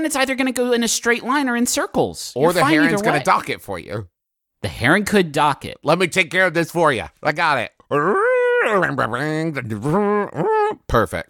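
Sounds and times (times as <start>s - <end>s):
speech: 0.0s - 11.2s
voice imitating boat horn and drone sounds: 2.5s - 3.4s, 7.9s - 10.9s.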